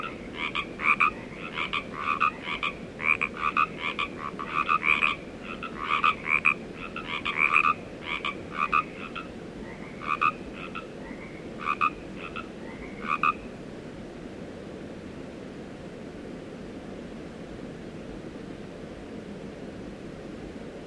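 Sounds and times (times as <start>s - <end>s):
frogs: 0.0s - 13.5s.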